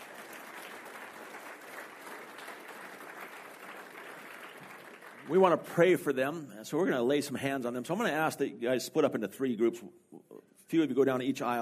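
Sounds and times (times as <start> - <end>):
audience clapping: 0.0 - 5.9
speech: 5.3 - 11.6.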